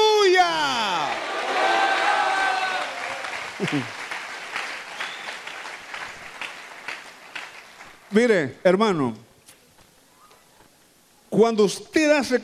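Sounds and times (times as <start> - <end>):
audience applause: 0.6 - 8.3
speech: 3.7 - 4.0, 8.1 - 9.2, 11.4 - 12.4.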